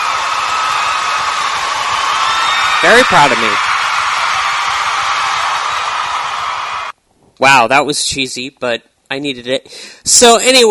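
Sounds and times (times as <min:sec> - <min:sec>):
applause and cheering: 0:00.0 - 0:07.0
speech: 0:02.8 - 0:03.7, 0:07.4 - 0:10.6.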